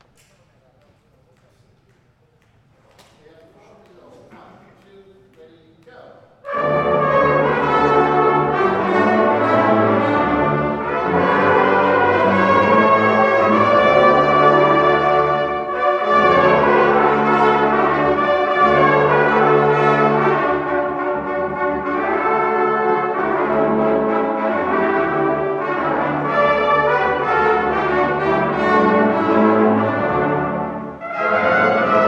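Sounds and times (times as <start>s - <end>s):
brass band playing a parade tune: 6.4s - 32.0s.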